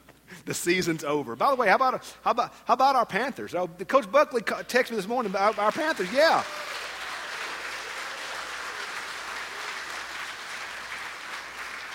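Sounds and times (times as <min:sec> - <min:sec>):
speech: 0:00.5 - 0:06.8
audience applause: 0:05.3 - 0:11.9.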